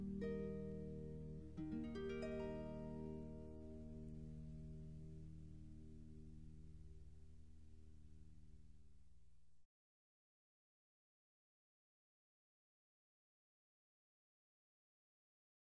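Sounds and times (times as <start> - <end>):
instrumental praise music on harp: 0.0 - 7.0.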